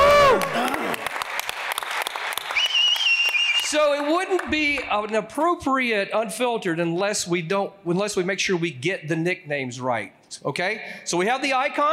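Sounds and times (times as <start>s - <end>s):
audience applause greeting a guest at an HVAC industry talk: 0.0s - 5.1s
speech: 3.7s - 11.9s.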